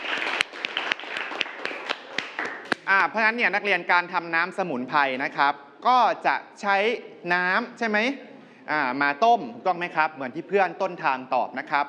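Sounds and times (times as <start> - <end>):
students clapping for a classmate during a class lesson: 0.0 - 2.9
speech: 2.9 - 11.8.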